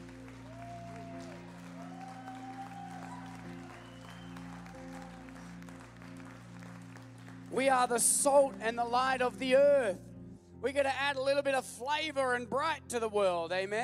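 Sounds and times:
audience clapping in praise: 0.0s - 9.0s
speech: 7.5s - 13.8s.

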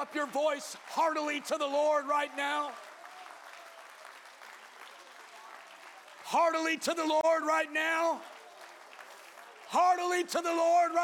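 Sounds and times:
speech: 0.0s - 2.9s, 6.3s - 8.3s, 9.7s - 11.0s
audience clapping: 0.0s - 11.0s.

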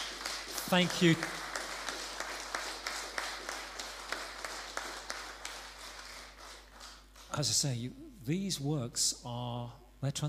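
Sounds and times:
audience applause: 0.0s - 7.3s
speech: 0.7s - 1.4s, 7.4s - 10.2s.

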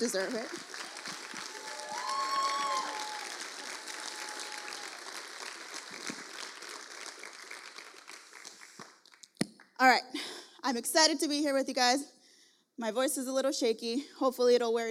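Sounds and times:
speech: 0.0s - 0.8s, 9.8s - 12.1s, 12.8s - 14.8s
audience clapping hands: 0.0s - 9.8s.

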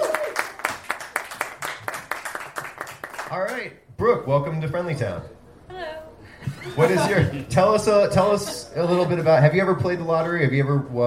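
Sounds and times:
audience clapping: 0.0s - 3.7s
speech: 3.3s - 5.4s, 6.6s - 11.0s
laughter: 6.4s - 9.6s.

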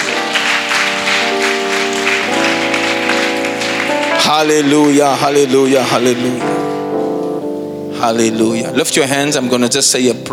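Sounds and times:
large group clapping hands: 0.0s - 6.7s
sustained musical tone: 0.0s - 8.8s
speech: 4.3s - 6.6s, 8.0s - 10.3s.

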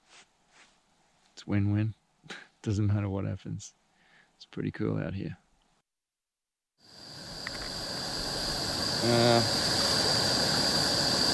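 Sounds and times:
speech: 1.4s - 3.8s, 4.4s - 5.4s, 9.0s - 9.7s
water boiling on a camp stove: 6.8s - 11.3s.

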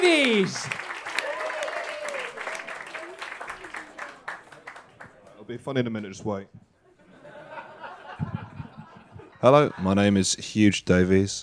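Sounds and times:
audience clapping to welcome a performer to the stage: 0.0s - 5.4s
speech: 5.5s - 6.7s, 9.4s - 11.4s
laughter: 6.9s - 10.3s.

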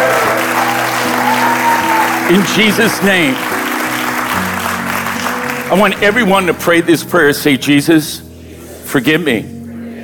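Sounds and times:
large crowd applause: 0.0s - 6.8s
speech: 2.3s - 3.5s, 5.7s - 8.3s, 8.9s - 9.6s.

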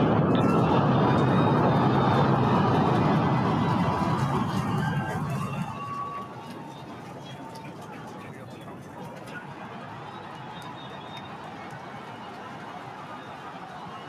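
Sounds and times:
SpaceX Starship rocket launch roar: 0.0s - 6.9s.

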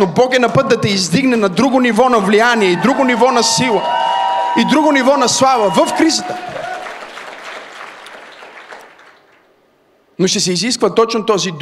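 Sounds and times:
speech: 0.0s - 6.6s, 10.2s - 11.6s
church congregation in Bulgaria applauding during a sermon: 2.2s - 9.5s.

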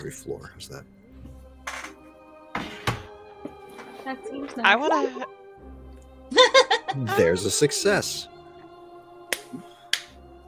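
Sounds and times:
speech: 0.0s - 1.0s, 4.0s - 8.3s, 9.5s - 9.7s
hand claps: 9.3s - 10.2s.

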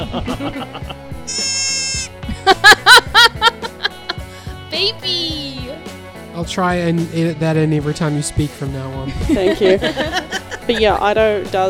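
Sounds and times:
laughter: 0.0s - 1.5s, 2.2s - 4.4s, 9.1s - 11.0s
speech: 0.1s - 1.5s, 4.8s - 5.2s, 6.4s - 11.6s
deer call sound effect: 1.3s - 2.1s.

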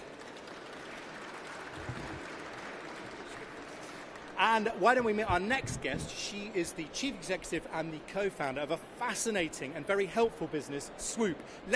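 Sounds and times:
audience applause: 0.0s - 5.2s
speech: 4.4s - 11.7s.

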